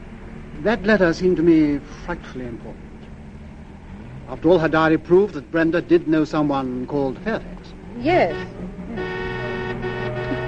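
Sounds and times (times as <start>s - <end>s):
street traffic: 0.0s - 10.4s
speech: 0.6s - 2.9s, 4.3s - 9.1s
car horn: 8.1s - 10.4s.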